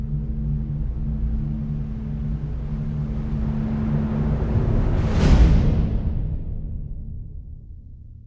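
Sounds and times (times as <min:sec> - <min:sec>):
orchestral crescendo: 0:00.1 - 0:06.9.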